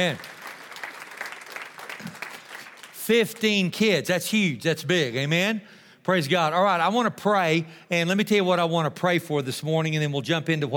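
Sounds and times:
speech: 0.0s - 0.3s, 3.1s - 10.7s
audience applause: 0.0s - 3.0s.

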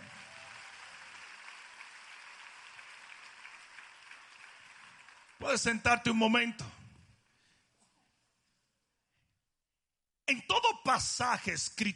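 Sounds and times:
audience applauding: 0.0s - 5.7s
speech: 5.4s - 6.8s, 10.9s - 11.9s.

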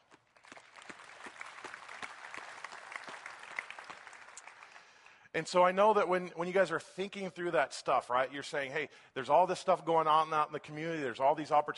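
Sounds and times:
applause: 0.0s - 5.3s
speech: 5.4s - 11.7s.

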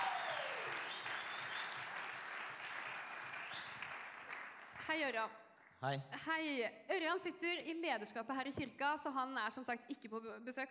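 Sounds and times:
audience applause: 0.0s - 4.8s
speech: 4.9s - 10.6s.

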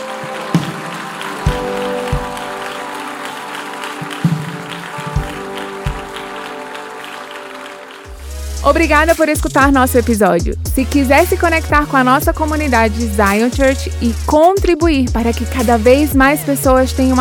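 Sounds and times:
loud audience applause: 0.0s - 8.2s
speech: 8.7s - 17.1s.

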